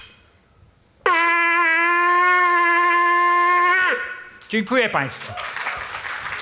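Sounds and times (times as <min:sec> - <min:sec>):
shofar ram's horn blowing: 0:01.0 - 0:04.4
speech: 0:04.5 - 0:05.6.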